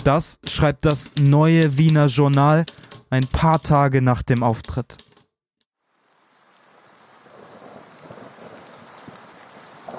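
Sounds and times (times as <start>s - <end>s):
speech: 0.0s - 5.1s
rain on London streets: 5.8s - 9.9s
thunder rumbling over London streets: 7.0s - 9.9s.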